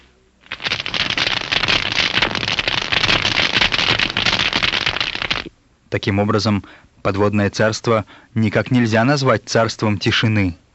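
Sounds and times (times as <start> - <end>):
snapping shrimp crackling underwater via hydrophone: 0.4 - 5.5
speech: 5.9 - 10.6.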